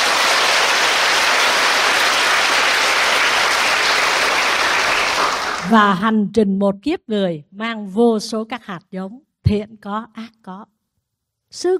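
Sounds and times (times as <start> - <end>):
audience applause: 0.0 - 5.7
speech: 5.7 - 10.8, 11.5 - 11.7.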